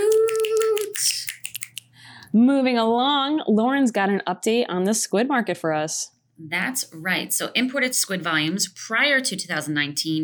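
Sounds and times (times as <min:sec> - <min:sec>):
finger snaps: 0:00.0 - 0:01.9
speech: 0:02.3 - 0:10.2.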